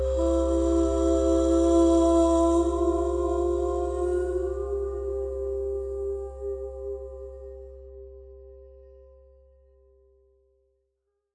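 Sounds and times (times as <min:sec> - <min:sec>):
crystal bowls ringing at 396 Hz and 528 Hz: 0:00.0 - 0:07.9
vocals: 0:00.0 - 0:08.2.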